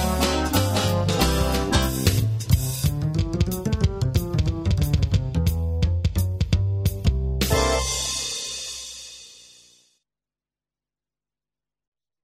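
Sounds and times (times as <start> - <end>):
dixieland jazz: 0.0 - 8.3.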